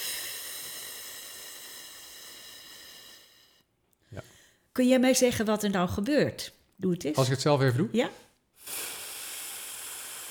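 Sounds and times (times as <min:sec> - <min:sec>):
slow complete exhale on a sustained f sound during a breathing exercise: 0:00.0 - 0:03.6, 0:08.6 - 0:10.2
speech: 0:04.1 - 0:08.8.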